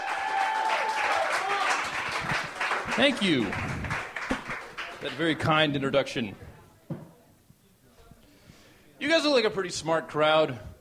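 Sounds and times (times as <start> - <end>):
audience cheering: 0.0 - 4.9
audience applause for a stand-up comedian: 0.0 - 5.6
speech: 3.0 - 3.8, 5.0 - 6.4, 9.1 - 10.7.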